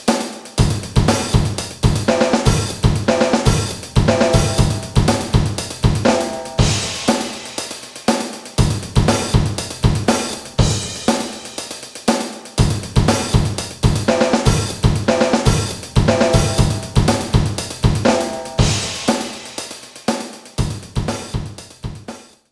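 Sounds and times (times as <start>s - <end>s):
drums: 0.0s - 22.5s.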